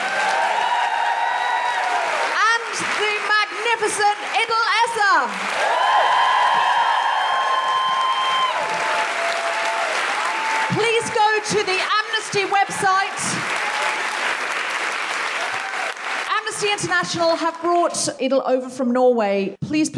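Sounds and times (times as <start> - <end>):
audience applause: 0.0 - 16.9
speech: 3.8 - 6.2, 16.6 - 19.9.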